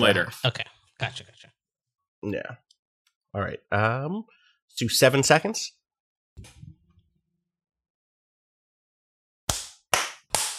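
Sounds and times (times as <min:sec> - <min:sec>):
speech: 0:00.0 - 0:01.5, 0:02.2 - 0:02.6, 0:03.3 - 0:05.8, 0:06.4 - 0:06.6
hand claps for recording sync: 0:09.5 - 0:10.5.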